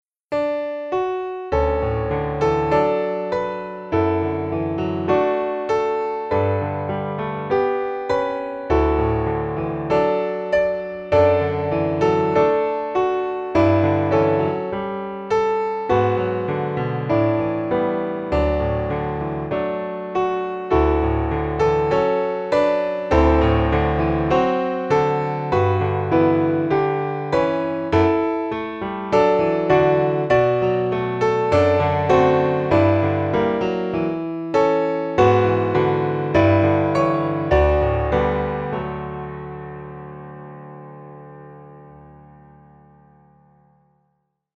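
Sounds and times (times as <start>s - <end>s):
solo piano: 0.3s - 44.2s.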